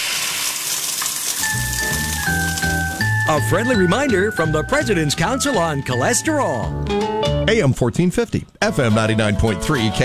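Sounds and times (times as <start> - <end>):
egg frying sizzle: 0.0 - 3.4
sustained bright musical tones: 1.4 - 7.4
speech: 3.4 - 10.0.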